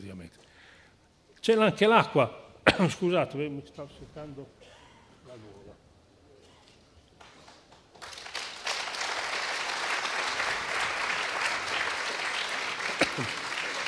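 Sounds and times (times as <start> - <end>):
speech: 0.1 - 0.5, 1.4 - 5.8, 13.2 - 13.4
audience applause: 7.5 - 13.8.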